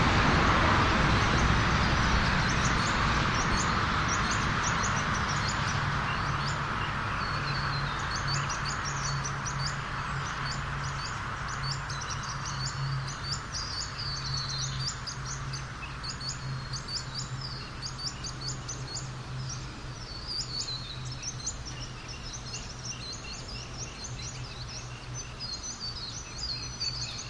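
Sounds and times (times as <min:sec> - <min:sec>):
birds at a rest area in Australia: 0:00.0 - 0:27.2
traffic passing a rest area in Australia: 0:00.0 - 0:27.2
wind in trees in Australia: 0:00.0 - 0:27.2.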